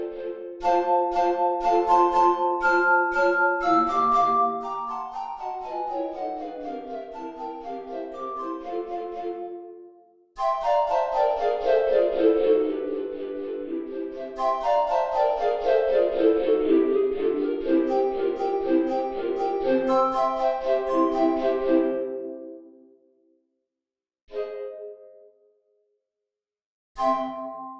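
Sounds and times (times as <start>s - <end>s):
pizzicato polka: 0.0s - 9.6s, 10.4s - 22.5s.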